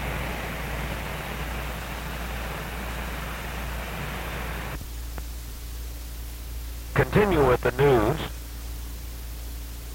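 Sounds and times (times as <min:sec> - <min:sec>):
heavy rain: 0:00.0 - 0:04.8
speech: 0:07.0 - 0:08.4.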